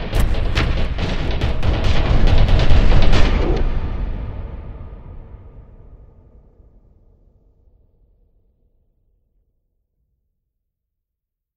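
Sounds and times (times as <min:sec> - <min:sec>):
slam action: 0:00.0 - 0:04.6.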